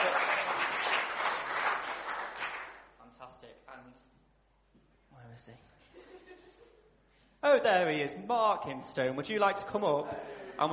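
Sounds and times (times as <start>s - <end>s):
crowd applause: 0.0s - 2.8s
speech: 3.4s - 4.2s, 4.8s - 6.8s, 7.4s - 10.7s.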